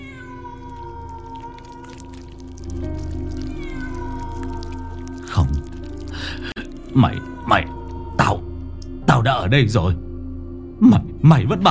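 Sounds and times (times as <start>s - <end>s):
cat meowing mournfully: 0.0s - 8.6s
suture thread cutting through flesh: 1.0s - 6.9s
speech: 7.0s - 8.5s, 9.1s - 10.0s, 10.8s - 11.6s.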